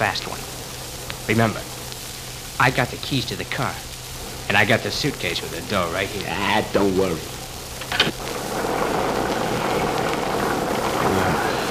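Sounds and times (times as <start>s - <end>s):
speech: 0.0s - 0.5s, 1.3s - 1.7s, 2.6s - 3.9s, 4.5s - 8.1s
rainstorm: 0.0s - 11.7s.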